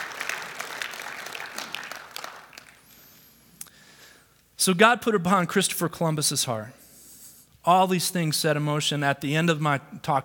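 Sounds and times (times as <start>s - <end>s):
audience clapping: 0.0s - 3.1s
speech: 4.6s - 6.8s, 7.6s - 10.2s.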